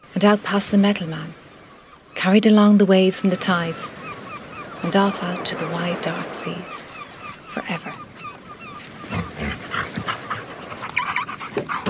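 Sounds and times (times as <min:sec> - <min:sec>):
speech: 0:00.2 - 0:01.4, 0:02.2 - 0:04.0, 0:04.8 - 0:06.9, 0:07.6 - 0:08.1
dog panting: 0:09.1 - 0:11.8.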